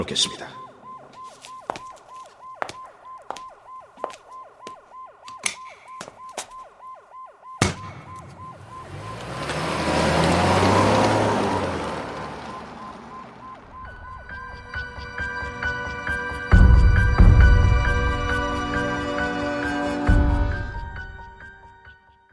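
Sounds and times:
speech: 0.0s - 0.6s
ambulance siren: 0.0s - 22.0s
sharp bang: 7.6s - 8.2s.

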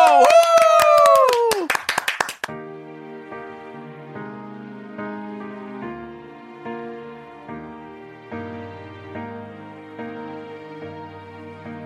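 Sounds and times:
cheering whoops: 0.0s - 1.8s
people clapping: 0.0s - 2.6s
soft music: 2.4s - 11.8s.

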